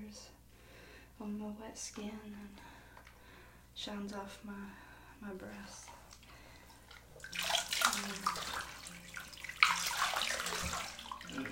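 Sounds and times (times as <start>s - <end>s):
speech: 1.2s - 2.8s, 3.8s - 6.0s, 7.9s - 9.0s
hot water running down a back: 5.4s - 11.5s.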